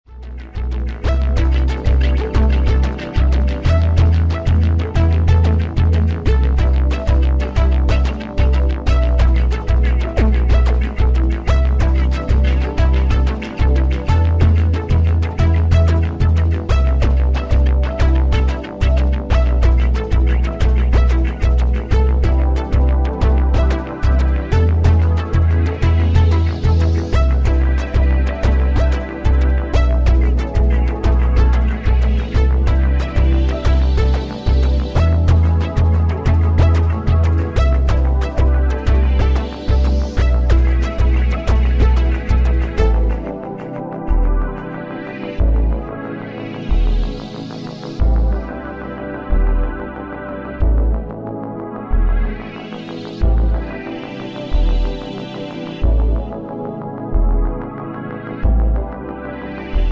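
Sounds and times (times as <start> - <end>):
ambient music: 0.0 - 59.9.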